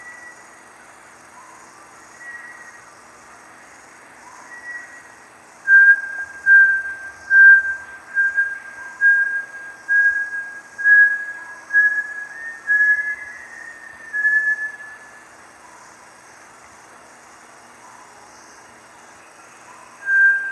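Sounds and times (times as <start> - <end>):
Bartlett's tinamou whistling: 5.7 - 15.2, 20.0 - 20.4.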